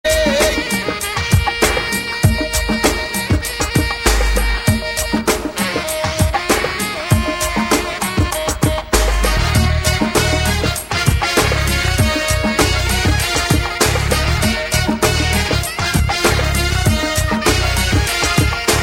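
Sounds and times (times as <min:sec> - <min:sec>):
saxophone: 0:00.0 - 0:18.8.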